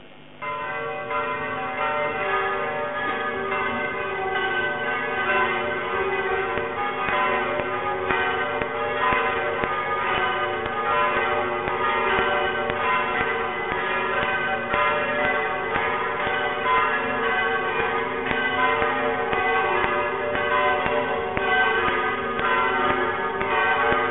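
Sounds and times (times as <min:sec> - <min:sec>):
bell: 0:00.0 - 0:24.0.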